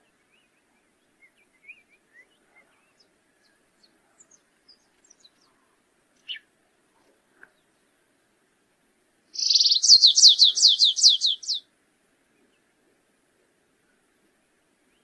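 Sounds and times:
stripe-tailed yellow finch song with buzzing trill and down-slurred notes: 9.4 - 11.6.

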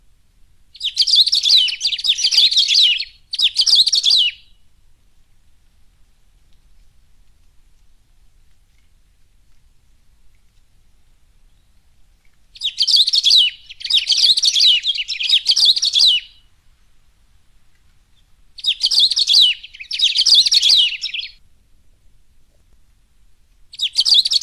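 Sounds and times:
Saffron-billed sparrow singing rapid tangled twittering phrases: 0.8 - 4.6, 12.6 - 16.5, 18.1 - 21.4, 23.7 - 24.4.

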